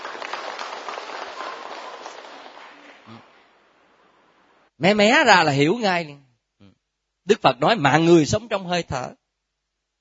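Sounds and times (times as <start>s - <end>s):
audience applause: 0.0s - 3.7s
speech: 4.8s - 6.2s, 7.3s - 9.2s.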